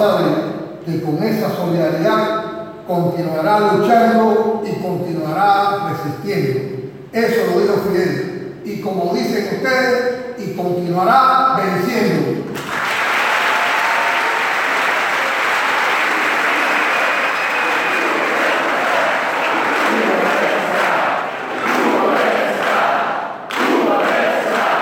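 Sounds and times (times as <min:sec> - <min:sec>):
speech: 0:00.0 - 0:12.5
large audience applause: 0:12.6 - 0:24.7.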